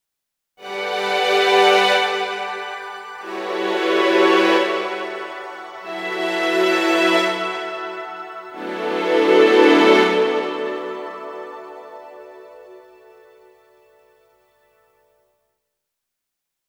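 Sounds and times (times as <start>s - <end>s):
painful piano bridge: 0.7s - 13.6s.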